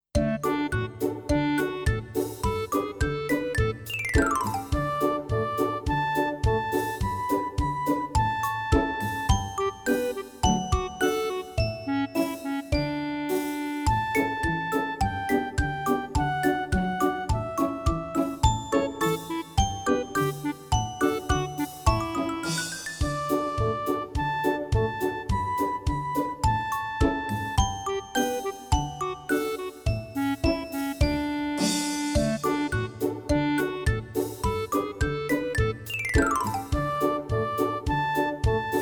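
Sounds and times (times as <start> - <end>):
melody: 0.2 - 38.2.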